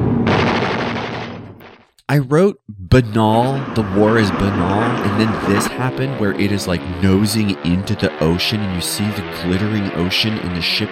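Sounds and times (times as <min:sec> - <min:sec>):
bomber gunfire in film: 0:00.0 - 0:01.9
bomber bombing in film: 0:00.0 - 0:10.9
speech: 0:02.1 - 0:10.9.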